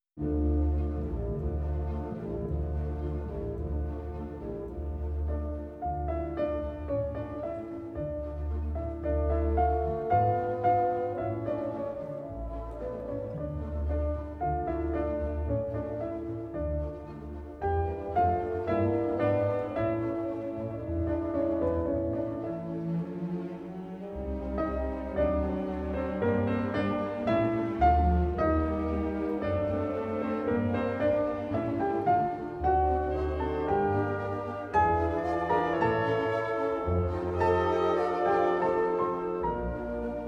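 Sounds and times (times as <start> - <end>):
piano concerto: 0.0 - 40.2.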